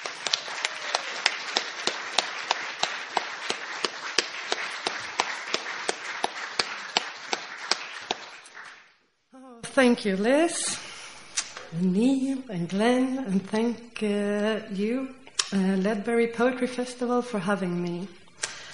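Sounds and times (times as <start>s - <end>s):
audience applause welcoming a poet at the Ledbury Poetry Festival: 0.0s - 9.0s
speech: 9.8s - 10.8s, 11.7s - 18.2s.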